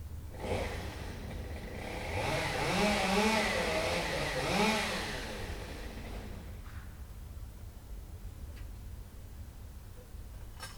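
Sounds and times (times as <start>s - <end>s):
chainsaw: 0.3s - 6.6s.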